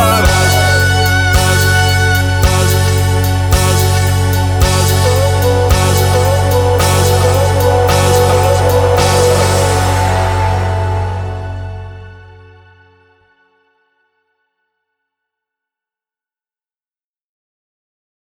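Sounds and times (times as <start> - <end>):
disco house music: 0.0 - 12.2.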